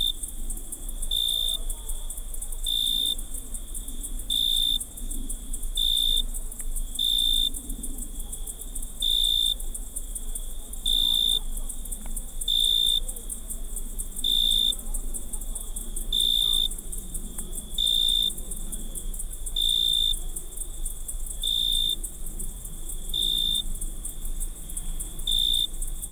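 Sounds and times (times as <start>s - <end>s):
insects at night on Unije Island in Croatia: 0.0s - 26.1s.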